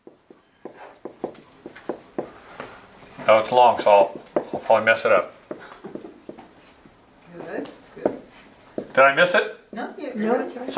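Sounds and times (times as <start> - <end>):
writing on a board during a class: 0.0 - 2.5, 3.8 - 9.4
speech: 3.3 - 5.4, 9.0 - 10.7.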